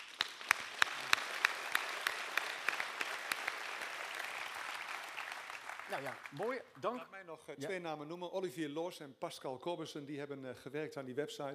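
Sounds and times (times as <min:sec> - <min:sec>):
audience applause: 0:00.0 - 0:06.6
speech: 0:05.9 - 0:11.5.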